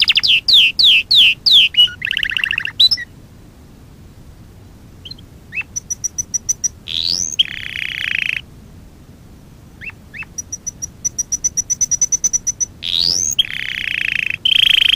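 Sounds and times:
Fife canary singing: 0:00.0 - 0:03.1, 0:05.0 - 0:08.5, 0:09.8 - 0:14.9.

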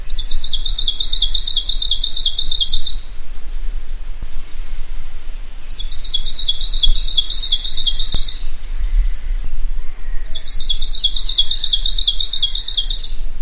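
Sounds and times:
Arctic warbler song chattering high trill: 0:00.1 - 0:03.0, 0:05.6 - 0:09.4, 0:10.0 - 0:13.2.

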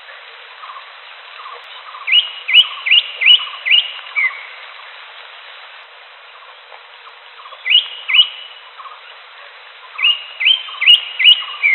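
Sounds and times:
wild greater green leafbird song of upswept whistles: 0:00.6 - 0:05.0, 0:06.4 - 0:09.2, 0:09.8 - 0:11.7.

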